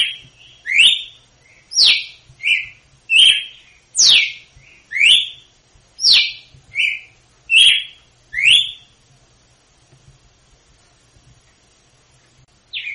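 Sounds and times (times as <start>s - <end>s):
female red-cowled cardinal singing in Northeast Brazil style: 0.0s - 8.9s, 12.7s - 12.9s.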